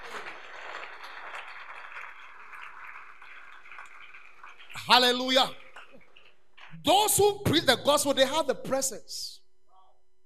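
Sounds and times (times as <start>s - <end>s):
weak audience clapping: 0.0s - 6.9s
speech: 4.9s - 5.6s, 6.8s - 9.4s.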